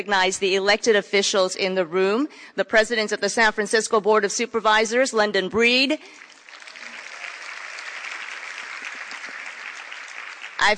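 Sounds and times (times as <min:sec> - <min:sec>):
speech: 0:00.0 - 0:06.3
crowd clapping: 0:06.0 - 0:10.7.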